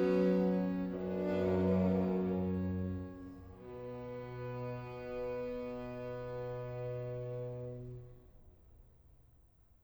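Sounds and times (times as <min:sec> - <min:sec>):
sinfonia: 0:00.0 - 0:07.7.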